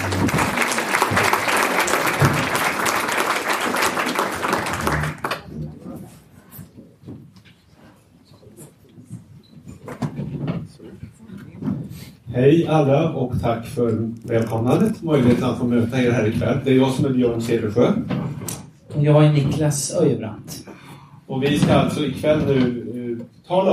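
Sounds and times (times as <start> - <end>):
audience applause: 0.0 - 5.8
speech: 12.4 - 18.2, 19.0 - 20.6, 21.3 - 22.9, 23.5 - 23.7.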